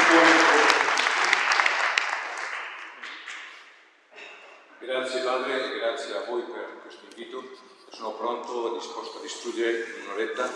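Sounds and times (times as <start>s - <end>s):
crowd welcome applause: 0.0s - 3.6s
speech: 5.0s - 10.5s.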